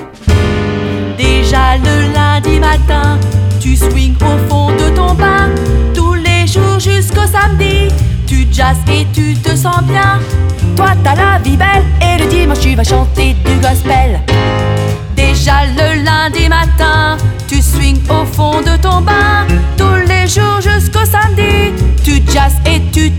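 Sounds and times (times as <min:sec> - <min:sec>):
jazz song with lyrics: 0:00.2 - 0:23.1.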